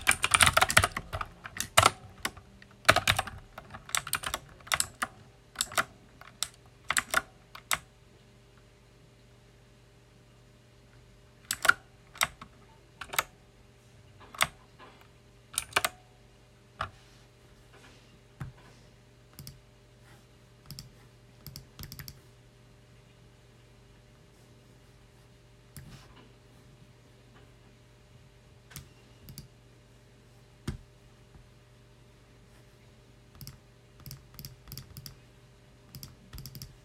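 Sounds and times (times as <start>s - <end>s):
loud mechanical keyboard keystrokes: 0.0s - 7.8s, 11.5s - 13.3s, 14.2s - 14.6s, 15.6s - 16.0s, 20.7s - 22.2s, 33.4s - 35.2s, 35.9s - 36.8s
low steady hum: 0.0s - 36.8s.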